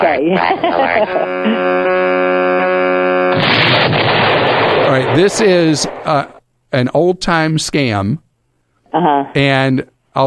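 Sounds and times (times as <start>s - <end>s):
speech: 0.0s - 1.5s, 5.1s - 8.2s, 8.9s - 10.2s
laughter: 0.0s - 2.6s
steady buzzing tone of a bomb sound effect: 0.6s - 6.2s
bomb sound effect rumbling burst: 3.4s - 6.4s.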